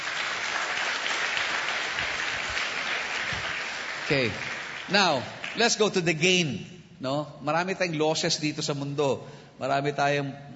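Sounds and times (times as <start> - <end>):
congregation applauding at a church service: 0.0 - 6.2
speech: 4.1 - 10.5.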